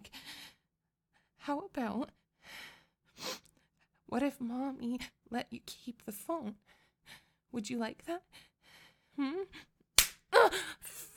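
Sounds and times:
speech: 0:01.5 - 0:02.2, 0:04.1 - 0:08.5, 0:09.2 - 0:09.7
slap against a person: 0:10.0 - 0:10.2.

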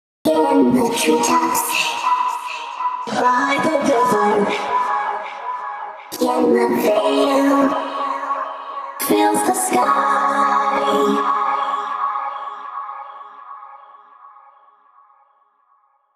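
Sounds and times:
vocals: 0:00.2 - 0:14.9.

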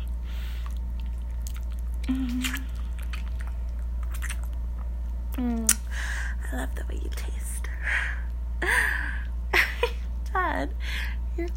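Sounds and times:
steady low hum: 0:00.0 - 0:11.5
speech: 0:02.1 - 0:02.5
person moaning: 0:02.1 - 0:02.7
wet kissing sounds: 0:02.1 - 0:03.2, 0:04.0 - 0:04.4, 0:05.6 - 0:05.9.

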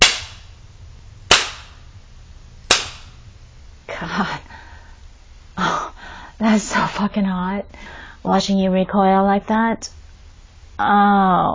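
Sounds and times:
spanking slaps on skin: 0:01.3 - 0:01.8, 0:02.7 - 0:03.2
speech: 0:04.0 - 0:04.5, 0:06.4 - 0:10.0, 0:10.8 - 0:11.5.

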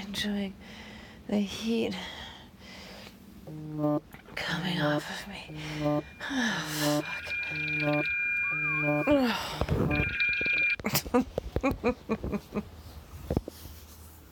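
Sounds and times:
speech: 0:00.1 - 0:02.2, 0:03.5 - 0:13.4
alarm going off: 0:04.9 - 0:10.8.

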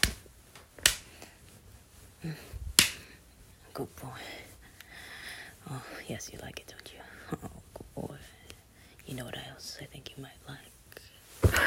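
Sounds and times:
slaps on skin: 0:00.0 - 0:00.2, 0:00.8 - 0:01.1, 0:02.7 - 0:03.1
soft sound: 0:00.0 - 0:11.6
speech: 0:02.2 - 0:02.5, 0:03.8 - 0:04.4, 0:05.7 - 0:07.5, 0:09.1 - 0:10.7.

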